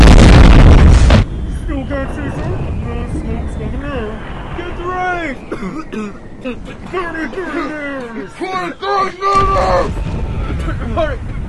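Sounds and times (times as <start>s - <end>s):
military crew weapons firing at a low-flying craft: 0.0s - 8.4s, 9.3s - 11.4s
rumbling tail: 0.0s - 11.4s
speech: 6.0s - 11.4s.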